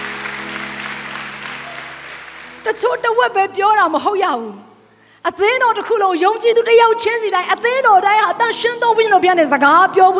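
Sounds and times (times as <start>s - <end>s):
congregation applause in a church service: 0.0s - 3.1s
speech: 2.7s - 10.1s.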